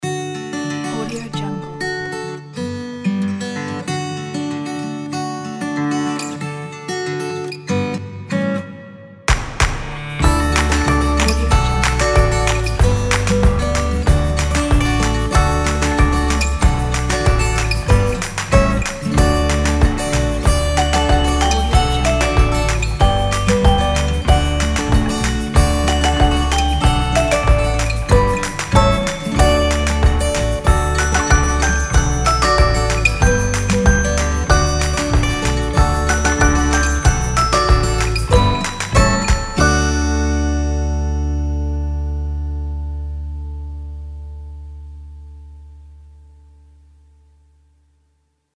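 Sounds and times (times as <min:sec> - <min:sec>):
sunny guitars: 0:00.0 - 0:44.4.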